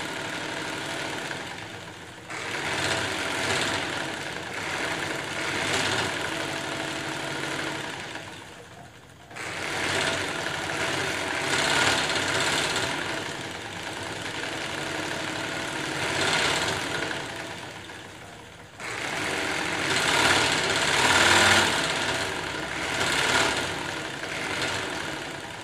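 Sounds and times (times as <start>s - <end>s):
treadle sewing machine: 0.0s - 25.6s.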